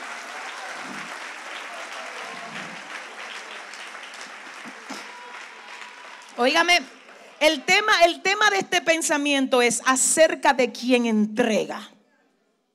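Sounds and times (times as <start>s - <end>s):
audience applause: 0.0s - 8.4s
speech: 6.4s - 11.9s.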